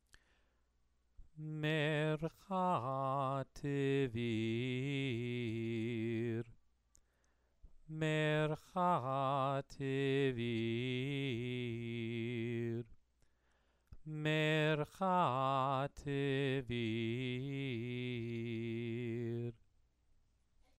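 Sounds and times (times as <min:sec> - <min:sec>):
person chanting scripture: 0:01.4 - 0:06.5, 0:07.9 - 0:12.9, 0:14.1 - 0:19.6.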